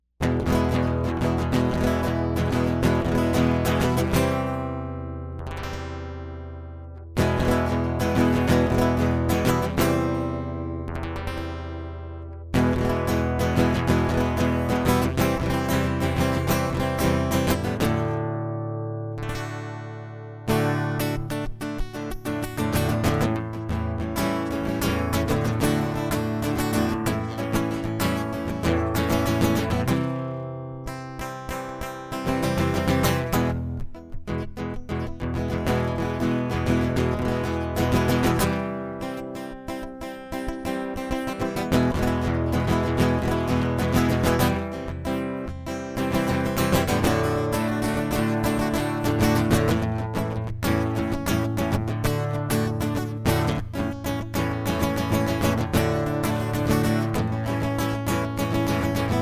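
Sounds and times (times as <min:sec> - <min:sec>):
acoustic music: 0:00.2 - 0:59.2.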